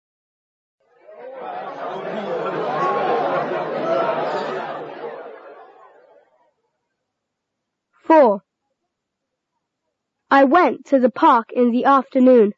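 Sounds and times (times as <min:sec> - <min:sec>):
busy restaurant chatter: 0:01.0 - 0:06.4
laughter: 0:01.1 - 0:06.2
speech: 0:08.1 - 0:08.4, 0:10.3 - 0:12.5.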